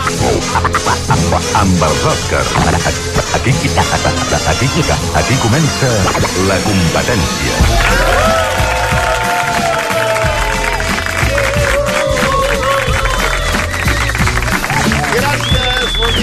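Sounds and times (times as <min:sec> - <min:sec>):
laughter: 0:00.0 - 0:16.2
speech: 0:01.6 - 0:08.4
studio audience applause: 0:07.6 - 0:16.2.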